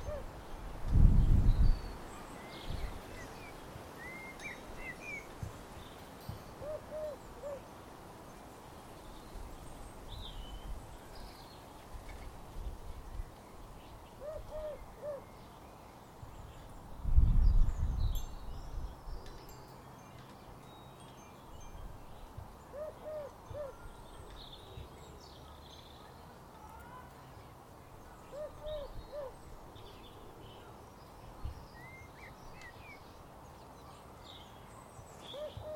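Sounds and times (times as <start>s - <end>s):
beautiful birdsong in garden: 1.1s - 35.7s
windchime in garden: 6.2s - 6.6s, 18.0s - 22.4s.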